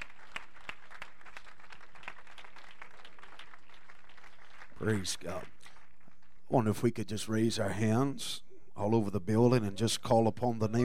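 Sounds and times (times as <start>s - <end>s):
audience hand clapping applause: 0.0s - 6.3s
speech: 4.8s - 5.6s, 6.5s - 10.8s.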